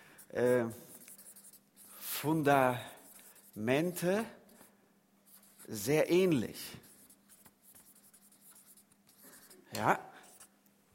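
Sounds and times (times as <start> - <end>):
speech: 0.3 - 0.8, 2.2 - 2.9, 3.6 - 4.4, 5.7 - 6.9, 9.7 - 10.1
handwriting: 0.5 - 4.7, 5.3 - 6.0, 6.8 - 9.6.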